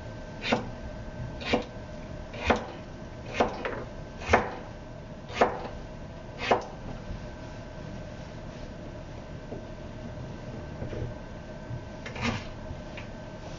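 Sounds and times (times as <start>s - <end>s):
steady low hum: 0.0s - 13.5s
knife cutting vegetables while making curry: 1.4s - 1.7s, 2.3s - 4.7s, 5.3s - 5.8s, 6.4s - 6.7s.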